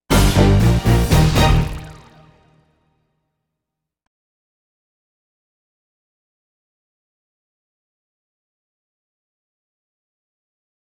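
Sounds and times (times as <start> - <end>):
duet in G minor: 0.1 - 2.6.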